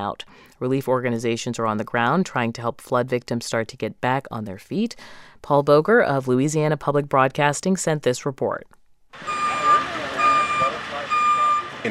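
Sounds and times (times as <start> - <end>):
speech: 0.0 - 9.5
low rumbling engine of an American Red Cross emergency response vehicle: 9.2 - 11.8
reversing beeps from an American Red Cross emergency response vehicle: 9.2 - 11.8.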